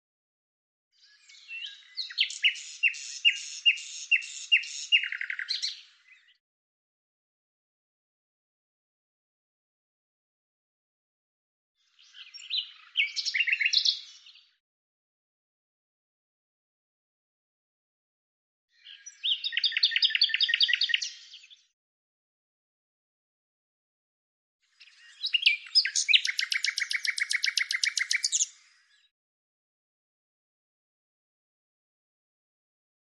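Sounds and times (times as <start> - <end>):
bird singing: 1.0 - 6.4, 11.9 - 14.6, 18.8 - 21.7, 24.7 - 29.1.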